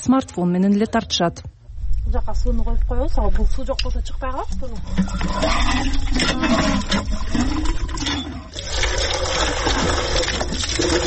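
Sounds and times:
speech: 0.0s - 8.7s
water pump drawing water in a village settlement: 4.6s - 11.0s.

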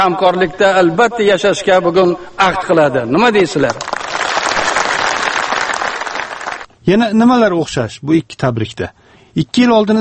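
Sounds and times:
speech: 0.0s - 4.0s, 6.9s - 10.0s
audience applause: 3.7s - 6.7s.

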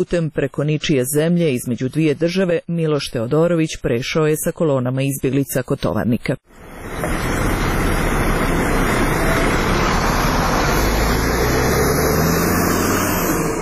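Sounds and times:
speech: 0.0s - 7.3s
bus arriving and stopping: 6.5s - 13.6s.

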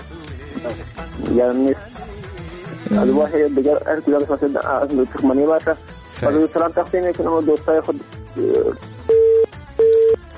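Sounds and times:
speech: 0.6s - 2.1s, 2.8s - 9.0s
phone busy tone after a call is cut off: 8.4s - 10.2s.

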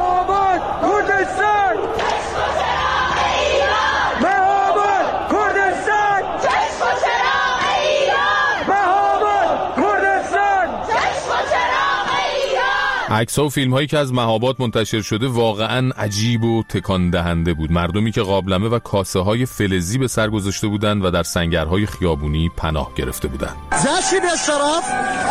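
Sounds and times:
crowd chanting protest slogans in Chitgar Tehran: 0.0s - 13.1s
speech: 13.1s - 25.2s.

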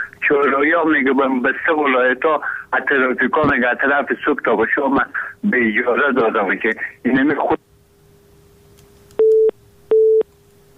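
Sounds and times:
speech: 0.3s - 7.7s
phone line busy tone after a dropped call: 9.2s - 10.2s.

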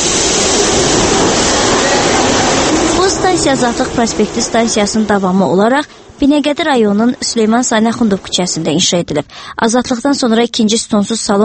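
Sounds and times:
metro train pulling away from a station platform: 0.0s - 8.3s
speech: 3.4s - 11.4s.

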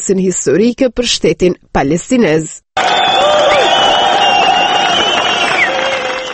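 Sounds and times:
speech: 0.0s - 3.2s
crowd cheering President Mahmoud Abbas in Ramallah: 2.8s - 6.3s.

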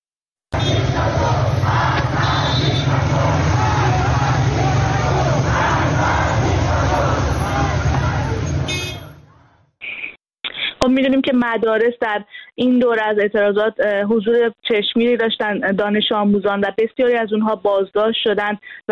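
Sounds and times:
school students chanting and shouting on a protest march in Tehran: 0.5s - 9.2s
speech: 10.8s - 18.9s.

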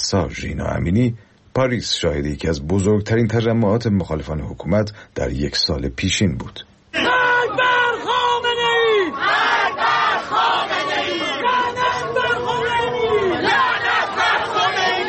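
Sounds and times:
speech: 0.1s - 6.7s
protest crowd chanting slogans: 7.0s - 15.0s.

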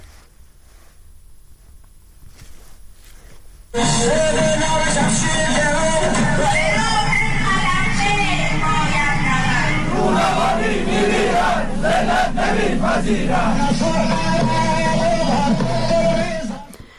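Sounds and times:
protest crowd chanting anti-government slogans: 3.8s - 16.6s.

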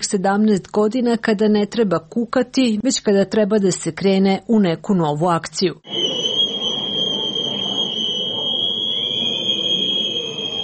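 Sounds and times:
speech: 0.1s - 6.2s
crowd noise at a protest: 5.8s - 10.6s
whistles blown at a protest on the 5 October anniversary: 5.8s - 10.6s.

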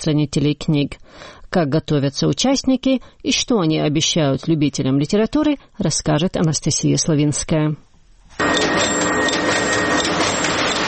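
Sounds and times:
speech: 0.0s - 7.8s
industrial printing machine rhythmically cutting paper roll: 8.4s - 10.8s.

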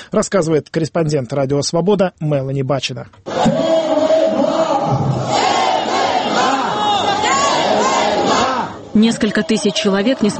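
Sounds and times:
speech: 0.1s - 3.8s, 9.0s - 10.3s
protest crowd chanting slogans: 3.3s - 10.3s.

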